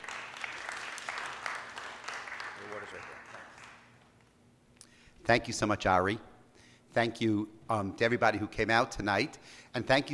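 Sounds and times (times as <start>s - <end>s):
faint applause from a synagogue congregation: 0.0s - 3.9s
speech: 2.9s - 3.3s, 5.3s - 6.3s, 6.9s - 10.1s.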